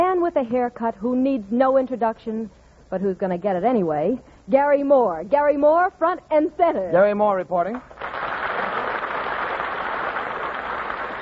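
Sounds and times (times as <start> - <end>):
speech: 0.4 - 7.9
studio audience applause: 7.7 - 11.1.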